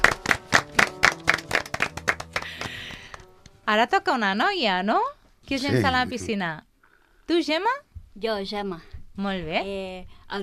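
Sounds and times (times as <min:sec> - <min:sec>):
applause: 0:00.0 - 0:03.6
speech: 0:03.7 - 0:06.7, 0:07.3 - 0:10.4.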